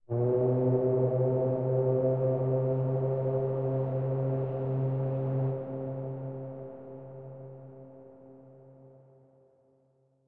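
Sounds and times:
ambient music: 0:00.1 - 0:07.9.

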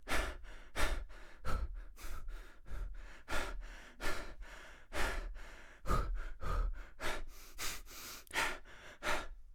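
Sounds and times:
breathing while sprinting: 0:00.0 - 0:09.4.

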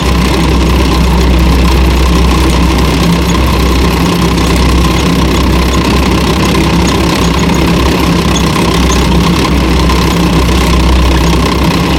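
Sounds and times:
tank tracks at light speed: 0:00.0 - 0:11.9.

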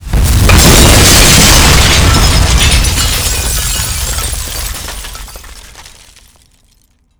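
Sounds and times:
building explosion: 0:00.0 - 0:04.8.

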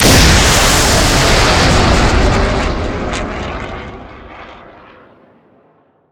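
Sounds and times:
weapon missile launch: 0:00.0 - 0:04.4.

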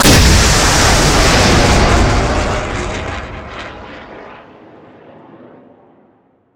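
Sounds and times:
weapon missile launch: 0:00.0 - 0:04.6.

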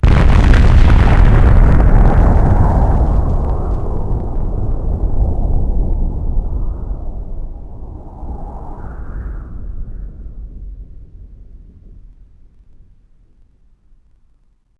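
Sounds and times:
ICBM bomb explosion: 0:00.0 - 0:12.9.

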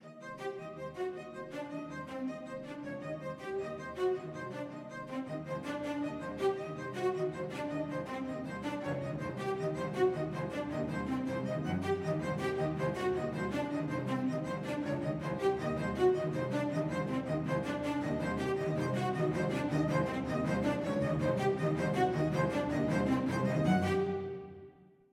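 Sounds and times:
interactive music: 0:00.0 - 0:25.1.

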